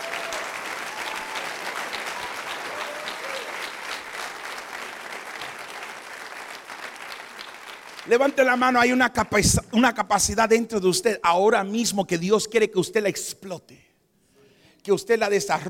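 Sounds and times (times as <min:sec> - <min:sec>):
audience applause: 0:00.0 - 0:08.5
speech: 0:08.1 - 0:13.9, 0:14.8 - 0:15.6.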